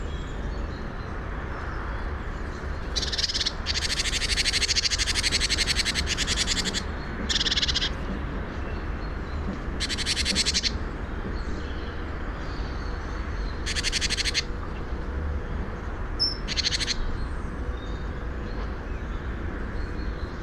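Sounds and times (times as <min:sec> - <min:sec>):
great tit rattling churrs: 0:00.4 - 0:20.4.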